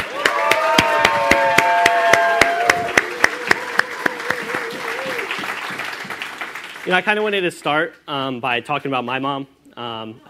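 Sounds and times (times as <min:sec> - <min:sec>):
crowd cheering: 0:00.0 - 0:07.0
audience applause: 0:00.0 - 0:07.2
speech: 0:06.9 - 0:10.2.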